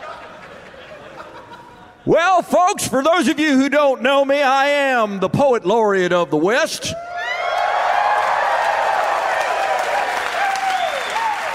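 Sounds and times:
laughter: 0:00.0 - 0:02.2
speech: 0:02.0 - 0:07.1
audience applause: 0:07.4 - 0:11.5.

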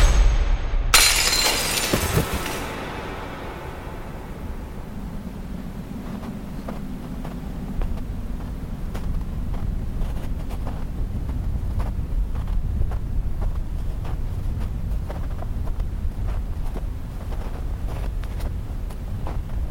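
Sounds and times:
steady low rumble of wind: 0:00.0 - 0:19.6
glass debris tinkling: 0:00.9 - 0:04.9
window glass shattering: 0:01.0 - 0:03.0.

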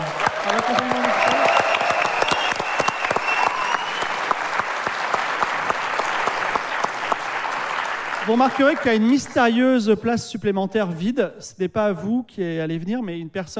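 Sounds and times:
audience applause: 0:00.0 - 0:09.6
speech: 0:08.3 - 0:13.5.

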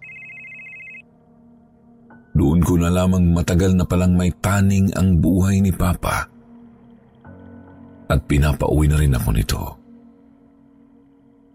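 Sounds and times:
telephone ringing during a call: 0:00.0 - 0:01.1
speech: 0:02.6 - 0:06.3, 0:08.1 - 0:09.8.

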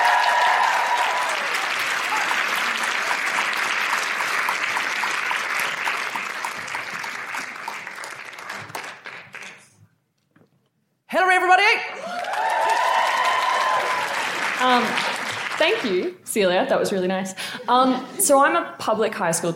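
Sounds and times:
audience applause: 0:00.0 - 0:09.8, 0:11.9 - 0:16.1
speech: 0:15.7 - 0:19.5.

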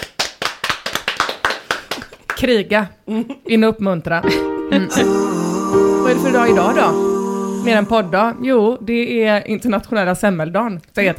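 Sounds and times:
applause: 0:00.0 - 0:02.5
speech: 0:02.4 - 0:11.1.

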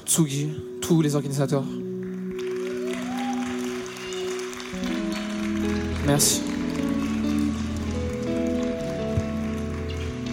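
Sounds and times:
speech: 0:00.1 - 0:01.8, 0:06.1 - 0:06.6
audience applause: 0:02.0 - 0:10.3
audience cheering: 0:02.6 - 0:05.2.

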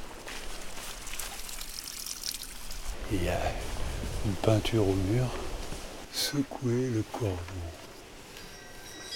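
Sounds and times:
spring water trickling: 0:00.2 - 0:03.0
speech: 0:03.1 - 0:03.7, 0:04.2 - 0:05.4, 0:06.2 - 0:07.8.

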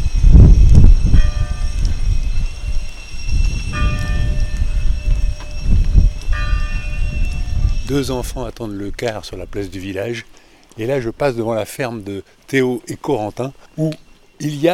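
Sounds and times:
wind blowing: 0:00.0 - 0:14.7
church bell of Villadin striking eight o'clock: 0:01.1 - 0:02.7, 0:03.4 - 0:08.0
speech: 0:07.9 - 0:14.7.

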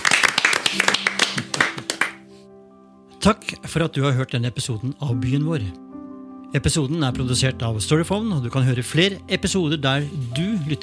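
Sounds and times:
small group clapping: 0:00.0 - 0:02.3
speech: 0:03.2 - 0:05.9, 0:06.5 - 0:10.8.

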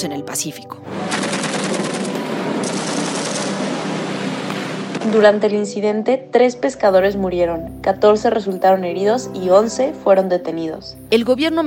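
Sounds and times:
speech: 0:00.0 - 0:02.1, 0:05.0 - 0:11.6
aircraft machine gun fire: 0:00.9 - 0:05.3.

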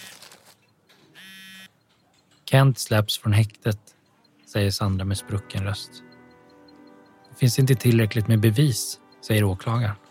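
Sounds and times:
electronic telephone ring: 0:01.2 - 0:01.8
speech: 0:02.5 - 0:06.1, 0:07.4 - 0:10.0.

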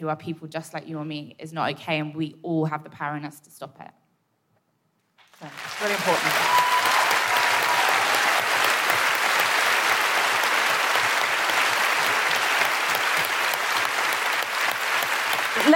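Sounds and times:
speech: 0:00.0 - 0:04.0, 0:05.4 - 0:06.8
audience applause: 0:05.3 - 0:15.7.

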